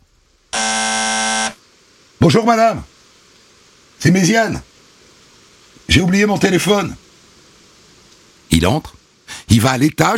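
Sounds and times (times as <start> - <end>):
gate intercom buzzer ringing: 0.6 - 1.6
speech: 2.2 - 2.9, 4.0 - 4.7, 5.9 - 7.0, 8.5 - 10.1.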